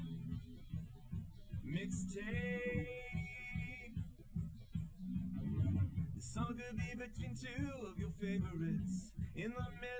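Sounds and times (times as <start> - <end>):
live recorded drums: 0.0 - 9.9.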